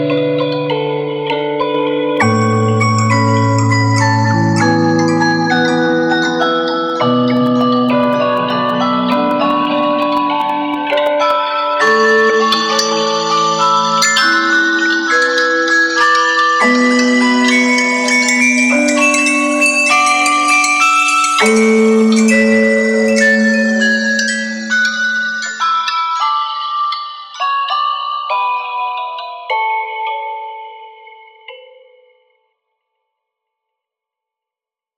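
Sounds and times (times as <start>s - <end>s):
music box: 0.5s - 31.8s.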